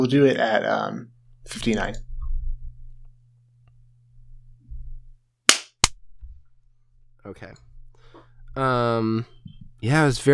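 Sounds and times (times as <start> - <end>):
speech: 0.0 - 2.1, 7.2 - 7.6, 8.6 - 10.3
hand clap for audio sync: 5.5 - 5.9.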